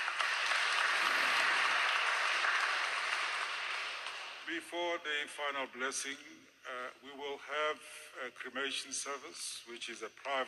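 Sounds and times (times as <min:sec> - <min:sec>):
round of applause: 0:00.0 - 0:04.5
speech: 0:04.5 - 0:10.4.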